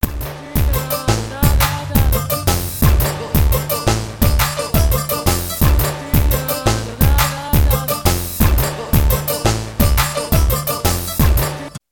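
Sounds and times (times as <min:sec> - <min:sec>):
music beat: 0:00.0 - 0:11.8.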